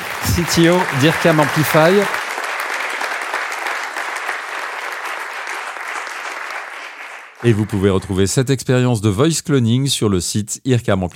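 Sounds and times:
audience applause: 0.0s - 8.2s
speech: 0.4s - 2.2s, 7.4s - 11.1s.

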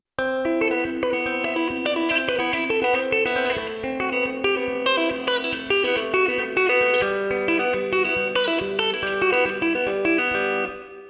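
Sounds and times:
fast distorted electric guitar riff: 0.2s - 11.0s.

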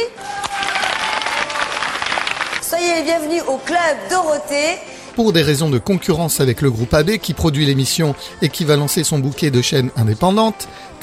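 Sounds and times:
studio audience applause: 0.3s - 2.7s
speech: 3.0s - 11.0s.

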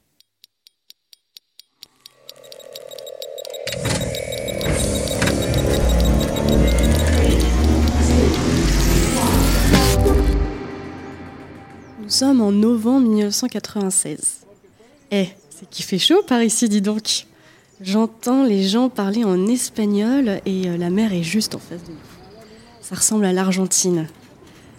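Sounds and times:
sci-fi time machine rapid ticking clicks: 0.0s - 10.3s
sci-fi time machine steady hum: 2.3s - 12.5s
speech: 12.2s - 14.4s, 15.1s - 22.1s, 22.9s - 24.2s.

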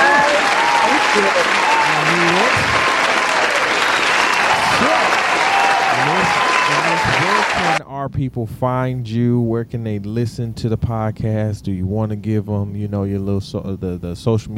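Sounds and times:
round of applause: 0.0s - 7.8s
speech: 1.2s - 2.6s, 8.1s - 14.5s.

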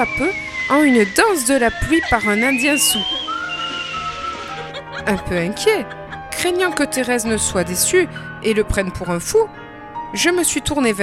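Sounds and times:
speech: 0.0s - 3.3s, 5.0s - 11.0s
man whistling a tune: 0.0s - 4.9s
laughter: 1.9s - 7.8s.

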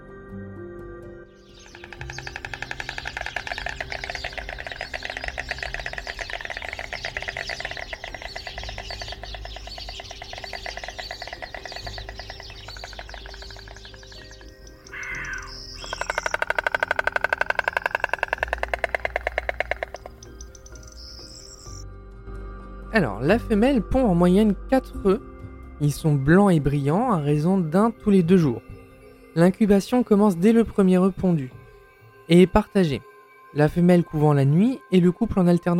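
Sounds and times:
White Stork bill clattering: 1.6s - 21.7s
speech: 23.0s - 28.7s, 29.4s - 31.6s, 32.3s - 35.7s.

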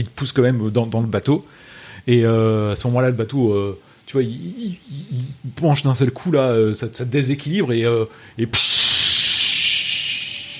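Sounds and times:
speech: 0.0s - 8.8s
air hissing from a float punctured by coral: 8.5s - 10.5s.

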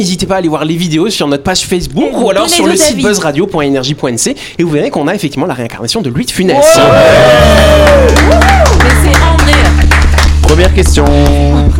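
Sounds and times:
speech: 0.0s - 9.2s, 10.5s - 11.7s
applause and cheering: 6.6s - 11.6s.

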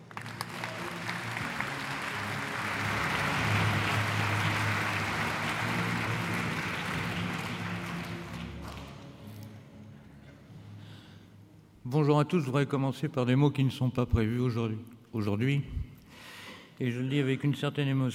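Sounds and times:
audience applause: 0.0s - 9.2s
speech: 11.9s - 15.9s, 16.8s - 18.1s.

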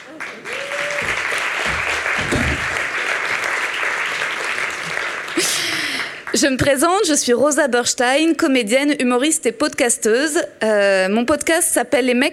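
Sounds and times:
audience applause: 0.0s - 6.3s
speech: 6.4s - 12.3s.

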